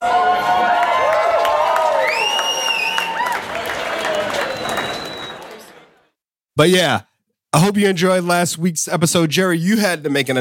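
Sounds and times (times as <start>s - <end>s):
voices cheering: 0.0s - 5.9s
applause sound effect: 0.2s - 6.1s
high sliding whistles: 2.0s - 3.2s, 4.0s - 5.5s
speech: 6.6s - 10.3s.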